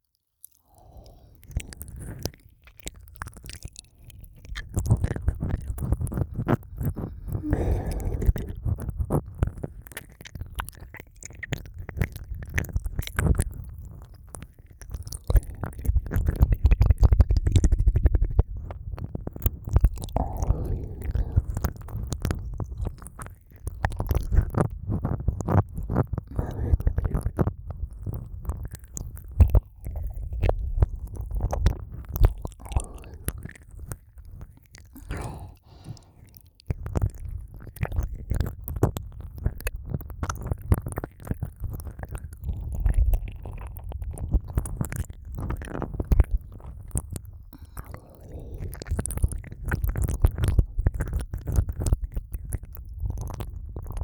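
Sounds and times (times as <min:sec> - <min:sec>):
left ear licking: 0:00.7 - 0:39.6, 0:40.2 - 0:54.0.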